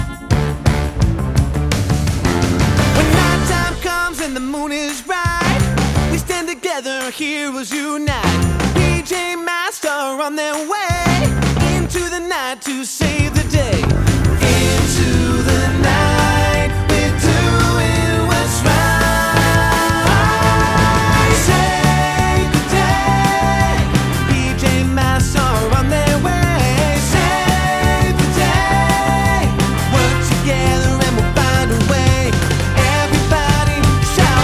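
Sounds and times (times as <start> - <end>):
song with vocals: 0.2 - 34.4.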